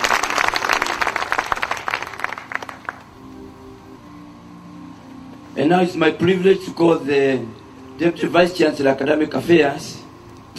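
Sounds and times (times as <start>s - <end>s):
audience applause: 0.0s - 3.1s
speech: 5.6s - 10.0s.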